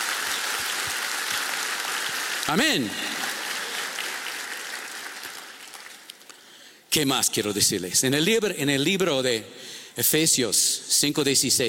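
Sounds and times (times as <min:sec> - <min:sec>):
audience applause: 0:00.0 - 0:06.3
speech: 0:02.5 - 0:03.2, 0:06.9 - 0:11.6.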